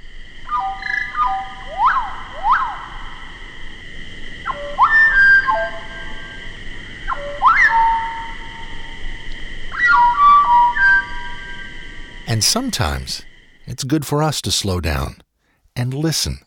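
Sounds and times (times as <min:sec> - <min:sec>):
steady ringing tone: 0:00.0 - 0:13.7
slowed-down slate-colored solitaire song: 0:00.4 - 0:03.6, 0:04.2 - 0:13.3
speech: 0:12.3 - 0:15.2, 0:15.8 - 0:16.4.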